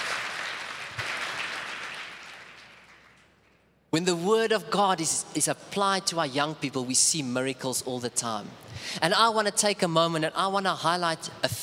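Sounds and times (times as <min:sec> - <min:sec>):
applause in a children's church service: 0:00.0 - 0:03.3
speech: 0:03.9 - 0:11.6.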